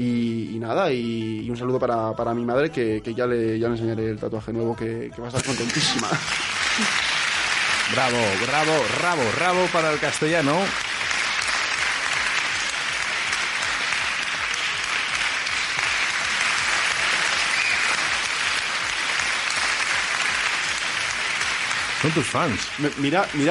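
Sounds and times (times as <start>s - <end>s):
speech: 0.0s - 7.1s, 7.9s - 10.8s, 22.0s - 23.5s
laughter: 5.4s - 7.1s
crowd applauding: 5.4s - 23.5s.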